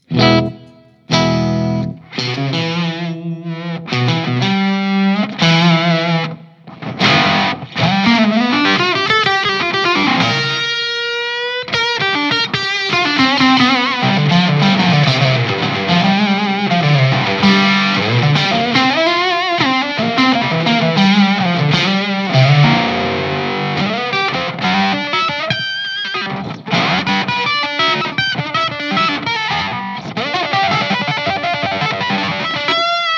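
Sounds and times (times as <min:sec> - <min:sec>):
heavily overdriven electric guitar with octave-down drive pedal: 0:00.0 - 0:33.1.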